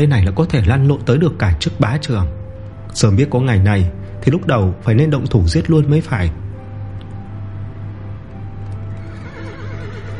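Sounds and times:
speech: 0.0 - 6.4
galloping horse hoofbeats in a forest: 8.9 - 10.1
horses neighing and whinnying in a forest: 8.9 - 10.1.

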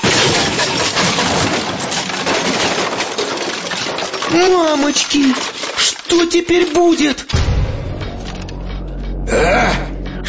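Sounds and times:
saucepan accidentally knocked over, clattering: 0.0 - 7.4
speech: 4.3 - 7.3, 9.3 - 9.8.

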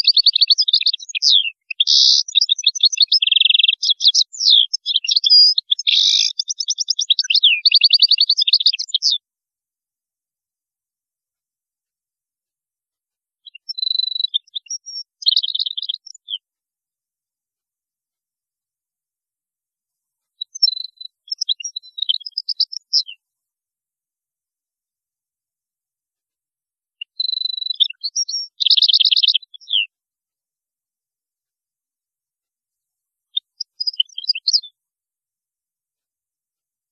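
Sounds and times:
European goldfinch song: 0.0 - 9.3, 13.4 - 16.5, 20.3 - 23.3, 27.0 - 30.0, 33.3 - 34.8.

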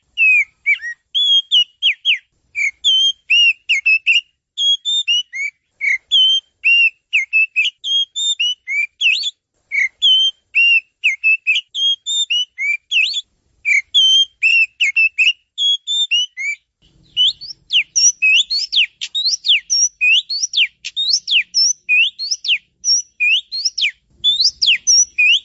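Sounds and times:
oriental magpie-robin song: 0.0 - 25.4.

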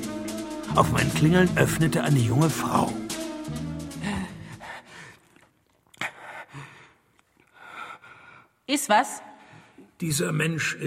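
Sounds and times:
speech: 0.7 - 3.0, 8.7 - 9.3, 10.0 - 10.8
man breathing heavily: 3.4 - 8.6.

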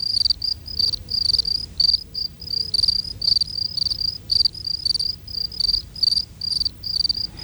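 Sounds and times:
three field crickets chirping at different rates: 0.0 - 7.4
low rumble: 6.6 - 7.4.

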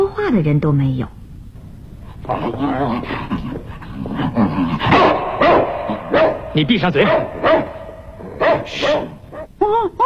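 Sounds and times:
speech: 0.3 - 1.2, 2.3 - 5.7, 6.5 - 7.7, 8.6 - 10.0
dog barking: 4.8 - 9.5.

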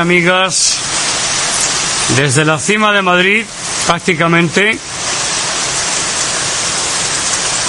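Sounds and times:
speech: 0.0 - 1.2, 2.1 - 4.9
heavy downpour rain: 0.0 - 7.6.

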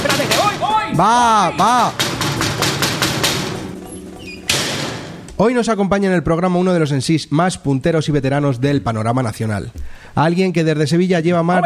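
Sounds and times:
speech: 1.0 - 2.1, 5.4 - 11.6
rapid knocking on a door: 1.8 - 5.1.

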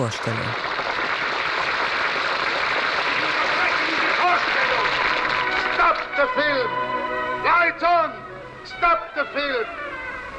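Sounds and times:
speech: 0.0 - 0.8, 6.2 - 9.8
spontaneous applause in a cinema: 0.0 - 6.3.

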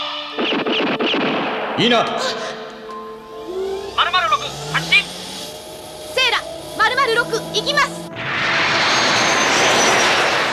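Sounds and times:
aircraft engine running: 0.0 - 10.5
speech: 1.8 - 2.6, 7.3 - 8.0.

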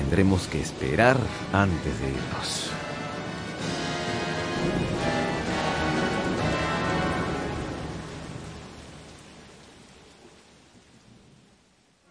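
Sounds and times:
heavy rain: 0.0 - 12.0
speech: 0.1 - 2.8
low thunder rumble: 2.2 - 11.5.

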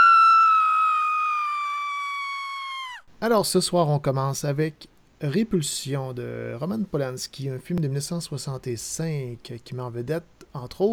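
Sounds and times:
woman screaming: 0.0 - 3.1
speech: 3.2 - 10.9.

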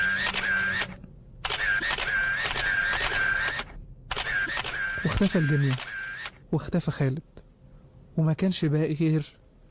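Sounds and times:
camera shutter clicks: 0.0 - 6.4
thin high mechanical whir of camera: 0.0 - 6.4
speech: 5.1 - 7.4, 8.2 - 9.4.

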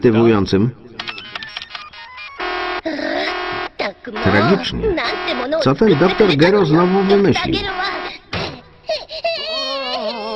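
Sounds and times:
speech: 0.0 - 0.9, 4.1 - 8.1
animated baby crying in a cartoon series: 2.8 - 3.6, 7.7 - 10.3.

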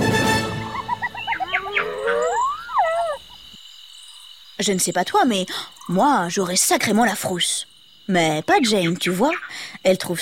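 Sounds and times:
hyenas cackling while fighting over prey: 0.4 - 3.5
lions roaring: 1.4 - 3.2
speech: 4.6 - 10.2.

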